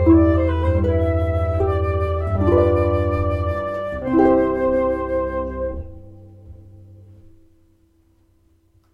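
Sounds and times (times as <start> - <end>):
flute: 0.0 - 6.8
harp: 0.0 - 7.6.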